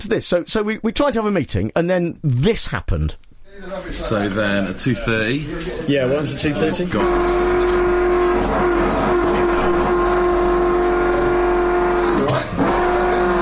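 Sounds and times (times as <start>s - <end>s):
speech: 0.0s - 7.6s
massive drilling noise: 7.0s - 13.3s.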